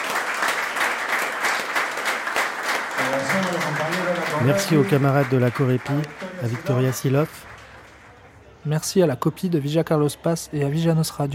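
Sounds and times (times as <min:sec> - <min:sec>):
audience applause: 0:00.0 - 0:08.2
speech: 0:03.1 - 0:07.5, 0:08.6 - 0:11.3.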